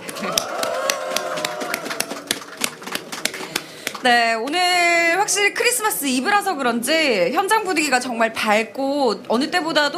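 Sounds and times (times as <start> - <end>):
crowd applause at outdoor rally: 0.0 - 4.1
speech: 4.0 - 9.9.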